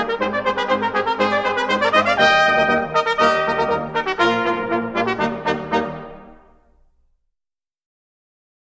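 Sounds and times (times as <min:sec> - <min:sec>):
brass band playing: 0:00.0 - 0:06.6.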